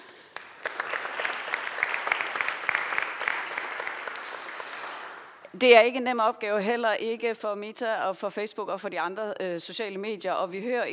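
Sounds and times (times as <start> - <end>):
audience clapping in a room: 0.0 - 5.5
speech: 5.6 - 10.9.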